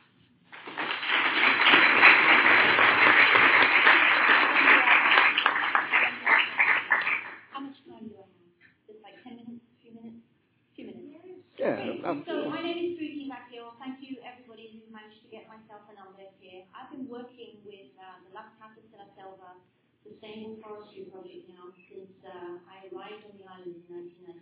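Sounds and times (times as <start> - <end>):
audience applause: 0.5 - 7.4.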